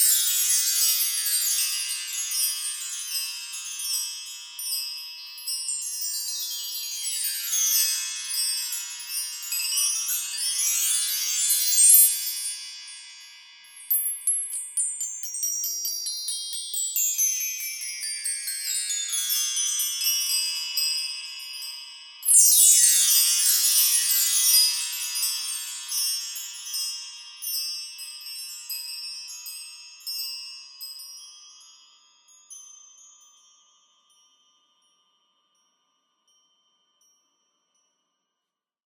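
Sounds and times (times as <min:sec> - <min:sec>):
bar chimes: 0:00.0 - 0:38.7.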